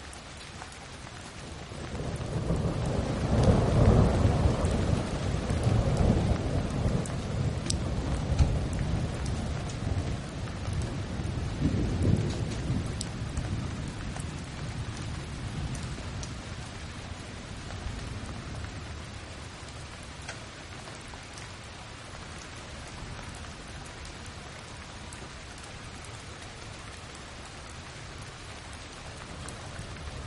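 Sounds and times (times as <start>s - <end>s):
steady rain: 0.0s - 30.2s
thunder rumbling: 1.7s - 19.1s.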